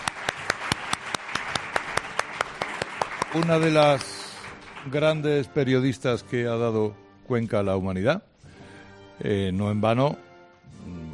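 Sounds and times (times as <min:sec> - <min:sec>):
audience applause: 0:00.0 - 0:05.2
speech: 0:03.3 - 0:04.2, 0:04.8 - 0:08.3, 0:09.2 - 0:10.2.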